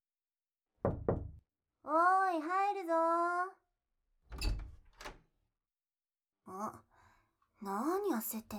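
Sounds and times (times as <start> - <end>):
knocking on a door: 0.8 - 1.4
speech: 1.9 - 3.6, 6.5 - 6.9, 7.6 - 8.5.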